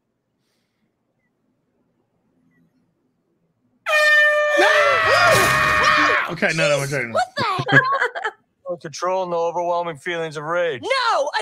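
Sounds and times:
air horn blast: 3.9 - 6.3
laughter: 5.7 - 8.4
speech: 6.3 - 8.0, 8.7 - 11.4.

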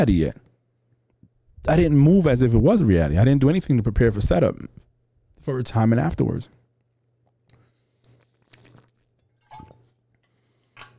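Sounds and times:
speech: 0.0 - 0.4, 1.6 - 4.8, 5.4 - 6.6
person drinking water: 7.5 - 9.4.

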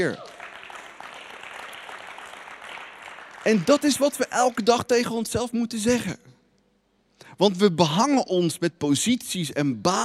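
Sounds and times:
speech: 0.0 - 0.3, 3.4 - 6.3, 7.4 - 10.0
applause: 0.0 - 4.9.

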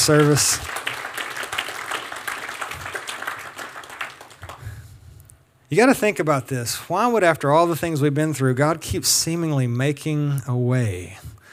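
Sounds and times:
speech: 0.0 - 0.8, 5.7 - 11.3
audience applause: 0.0 - 4.8.

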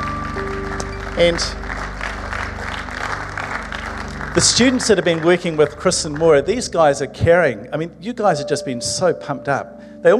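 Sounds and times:
audience applause: 0.0 - 6.8
speech: 1.2 - 1.6, 4.4 - 10.1.

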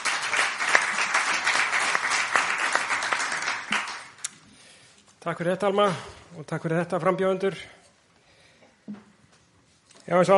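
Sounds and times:
audience applause at a public meeting with a candidate: 0.0 - 4.2
speech: 5.2 - 7.8, 10.1 - 10.3.

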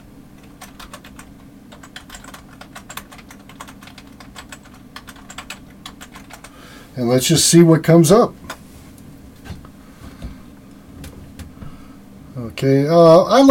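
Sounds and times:
typing on a computer keyboard: 0.4 - 6.6
speech: 7.0 - 8.4, 12.6 - 13.4.

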